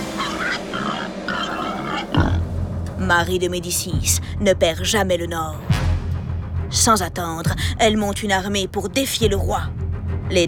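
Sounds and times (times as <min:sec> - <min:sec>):
wild boars grunting along a road: 0:00.0 - 0:02.5
speech: 0:03.1 - 0:05.7, 0:06.7 - 0:10.4.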